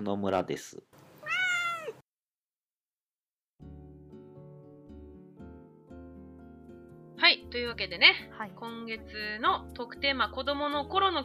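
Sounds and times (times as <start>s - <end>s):
speech: 0.0s - 1.0s, 7.2s - 11.2s
angry cat meowing: 1.2s - 2.0s.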